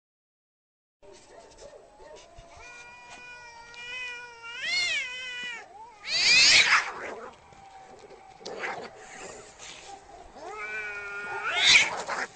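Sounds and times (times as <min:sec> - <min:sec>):
domestic cat yowling angrily: 0:02.1 - 0:07.4, 0:10.3 - 0:12.3.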